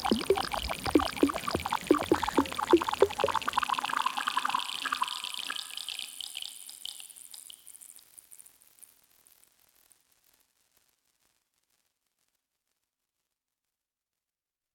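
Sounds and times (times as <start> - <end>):
bubbles: 0.0 - 6.2.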